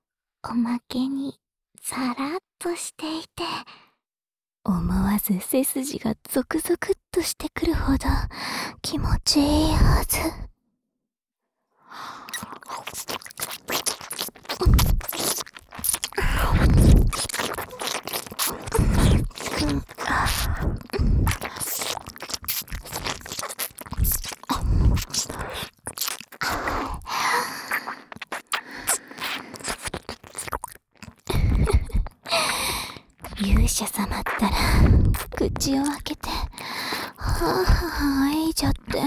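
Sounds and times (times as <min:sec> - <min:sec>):
speech: 0:00.4 - 0:03.8, 0:04.6 - 0:10.5, 0:12.7 - 0:13.9, 0:19.6 - 0:21.7, 0:33.7 - 0:36.2, 0:37.4 - 0:39.0
ear licking ASMR sounds: 0:12.2 - 0:39.0.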